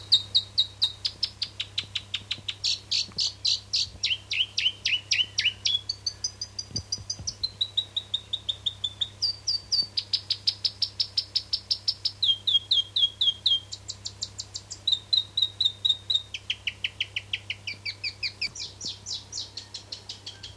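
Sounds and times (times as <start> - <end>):
South Island robin high-pitched song of rapid repeated notes: 0.0 - 20.5.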